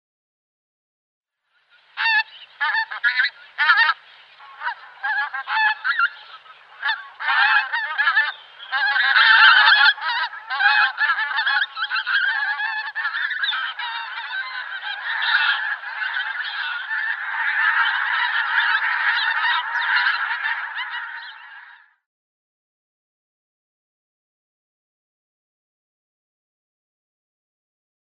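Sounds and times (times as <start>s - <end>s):
pink-footed goose: 1.5s - 22.1s.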